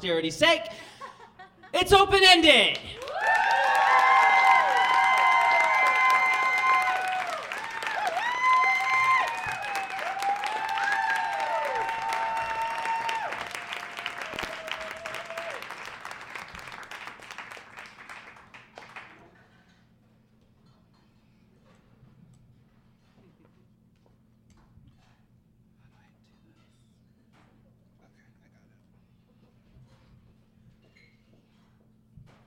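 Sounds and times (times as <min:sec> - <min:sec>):
speech: 0:00.0 - 0:01.0, 0:01.7 - 0:03.0
audience applause at live festival show: 0:02.7 - 0:19.5.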